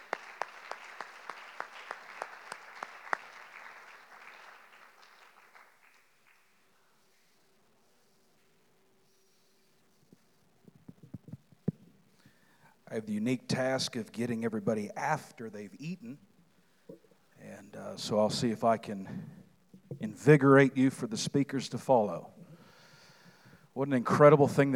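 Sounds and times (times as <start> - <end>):
audience at a theology conference applauding to welcome a speaker: 0.0 - 6.7
speech: 12.9 - 16.3, 17.8 - 19.4, 20.0 - 22.4, 23.8 - 24.7.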